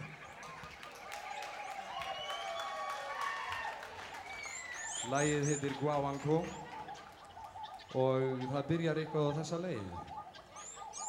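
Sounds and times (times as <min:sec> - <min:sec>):
applause: 0:00.0 - 0:06.9
speech: 0:05.0 - 0:06.7, 0:07.9 - 0:10.2.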